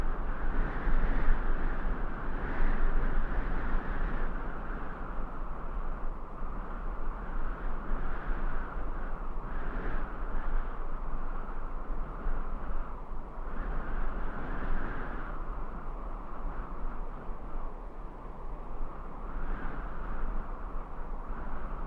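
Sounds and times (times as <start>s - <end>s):
medium sandy desert wind gusts: 0.0s - 21.8s.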